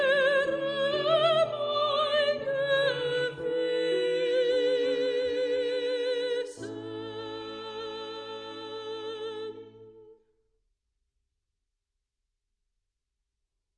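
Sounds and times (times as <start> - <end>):
soprano singing: 0.0 - 10.2.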